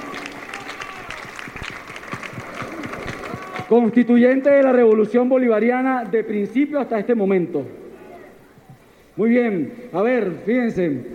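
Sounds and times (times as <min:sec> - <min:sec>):
audience applause at a gathering of community communicators in Caracas: 0:00.0 - 0:05.1
speech: 0:03.7 - 0:07.8, 0:09.2 - 0:11.1.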